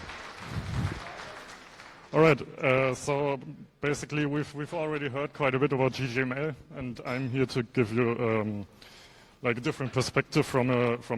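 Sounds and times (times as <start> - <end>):
audience applause: 0.0 - 2.3
speech: 2.1 - 11.1.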